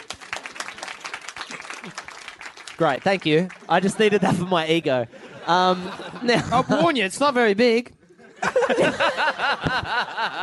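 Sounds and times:
audience applause: 0.0s - 4.3s
speech: 1.8s - 2.1s, 2.8s - 10.4s
laughter: 3.6s - 7.1s, 8.1s - 10.4s.

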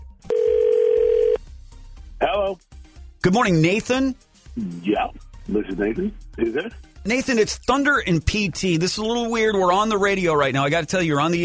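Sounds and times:
telephone ring tone on an outgoing call: 0.3s - 1.4s
speech: 2.4s - 11.4s.

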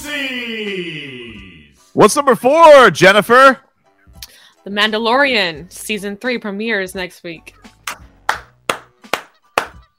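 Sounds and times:
speech: 2.0s - 3.6s, 4.6s - 7.7s
sharp hand claps: 7.8s - 9.9s.

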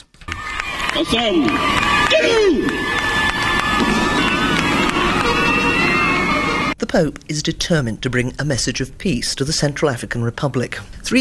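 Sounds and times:
crowd cheering and singing at an airport welcome: 0.3s - 6.8s
speech: 1.0s - 3.0s, 6.9s - 11.1s.

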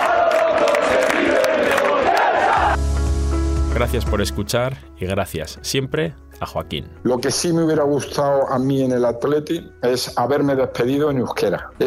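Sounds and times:
stadium crowd chanting: 0.0s - 2.8s
steady music: 2.4s - 11.8s
speech: 3.8s - 11.8s.

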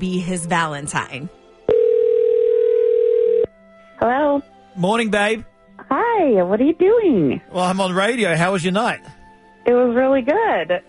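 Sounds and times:
speech: 0.0s - 1.4s, 4.0s - 10.8s
telephone dial tone: 1.7s - 3.5s.

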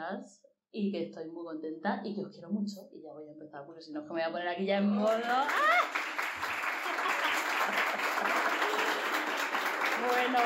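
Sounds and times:
speech: 0.0s - 6.2s, 10.0s - 10.4s
audience applause: 5.2s - 10.4s
laughter: 5.5s - 10.4s.

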